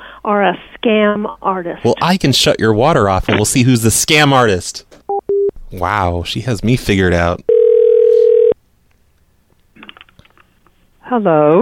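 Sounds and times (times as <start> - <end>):
speech: 0.2 - 4.9, 5.7 - 7.5, 11.1 - 11.6
telephone hang-up dial tone: 7.5 - 8.6.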